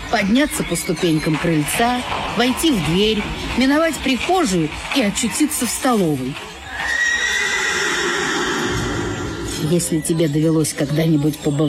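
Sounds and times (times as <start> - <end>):
speech: 0.1 - 6.5, 9.6 - 11.6
horse neighing: 6.7 - 9.7.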